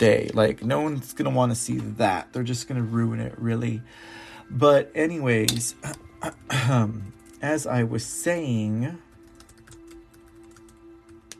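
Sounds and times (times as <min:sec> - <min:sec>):
speech: 0:00.0 - 0:09.1
typing on a computer keyboard: 0:09.2 - 0:11.3.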